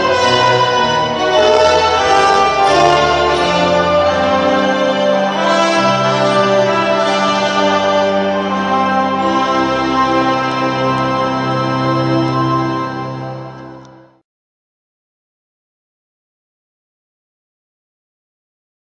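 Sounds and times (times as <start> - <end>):
fanfare wedding march: 0.0 - 14.2.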